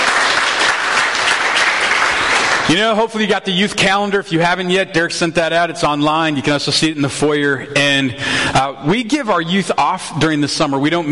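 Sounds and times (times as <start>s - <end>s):
audience applause: 0.0s - 2.9s
speech: 2.7s - 11.0s.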